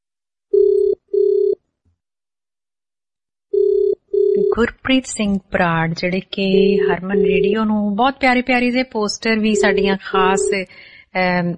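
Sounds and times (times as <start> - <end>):
telephone ringback tone on an outgoing call: 0.5 - 1.6, 3.5 - 4.6, 6.6 - 7.6, 9.4 - 10.6
speech: 4.6 - 11.5.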